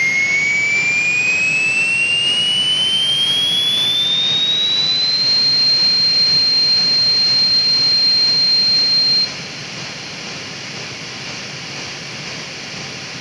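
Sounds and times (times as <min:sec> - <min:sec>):
DMT drone: 0:00.0 - 0:09.3.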